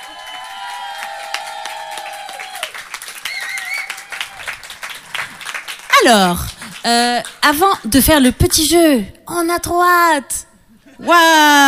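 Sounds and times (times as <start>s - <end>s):
audience cheering: 0.0s - 5.6s
audience applause: 0.0s - 7.4s
speech: 6.0s - 11.6s.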